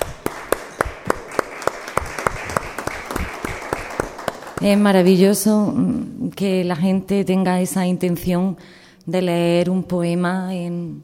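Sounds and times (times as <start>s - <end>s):
sharp single clap: 0.0s - 4.7s
audience applauding: 0.0s - 5.0s
speech: 4.6s - 11.0s.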